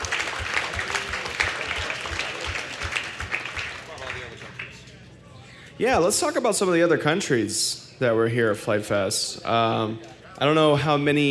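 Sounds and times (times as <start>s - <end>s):
audience applause: 0.0s - 4.8s
speech: 5.8s - 11.2s.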